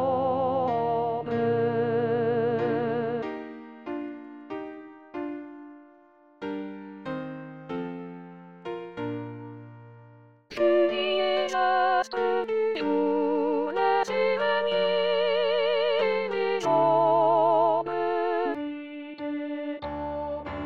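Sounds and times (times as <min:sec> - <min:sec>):
soprano singing: 0:00.0 - 0:03.7, 0:10.5 - 0:20.6.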